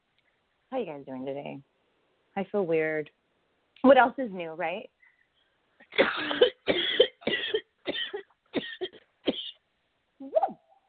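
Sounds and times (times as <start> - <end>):
speech: 0.7 - 1.7, 2.4 - 3.2, 3.8 - 5.0
person coughing after smoking: 5.9 - 9.6.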